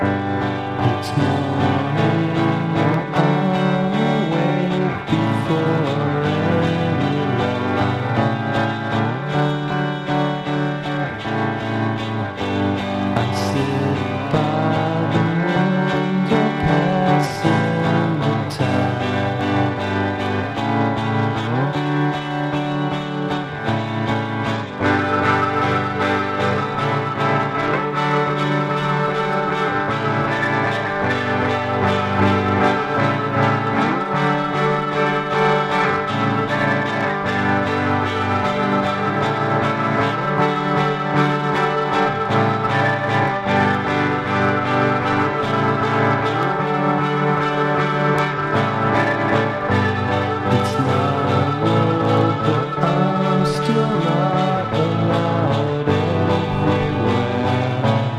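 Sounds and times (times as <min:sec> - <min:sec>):
acoustic blues guitar pop: 0:00.0 - 0:58.1.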